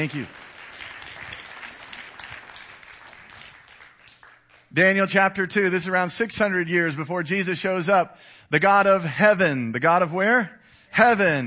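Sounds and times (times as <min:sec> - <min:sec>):
speech: 0:00.0 - 0:00.4, 0:04.7 - 0:11.4
audience clapping hands: 0:00.0 - 0:05.1.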